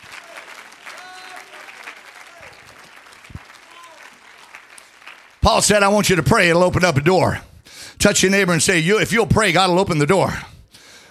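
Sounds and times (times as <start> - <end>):
audience clapping hands: 0.0 - 7.3
speech: 5.4 - 10.5.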